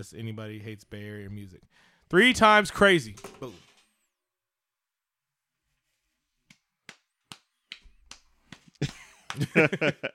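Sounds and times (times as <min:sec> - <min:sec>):
speech: 0:00.0 - 0:03.7, 0:08.8 - 0:10.1
hand clapping: 0:06.4 - 0:09.9
people laughing: 0:08.8 - 0:10.1.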